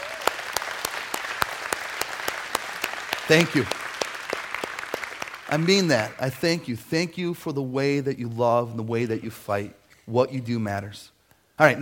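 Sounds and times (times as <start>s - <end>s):
audience applause: 0.0s - 6.2s
speech: 3.3s - 3.8s, 5.5s - 11.8s.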